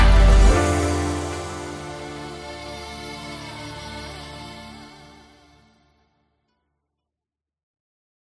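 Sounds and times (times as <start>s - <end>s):
Asian lofi music: 0.0s - 5.1s.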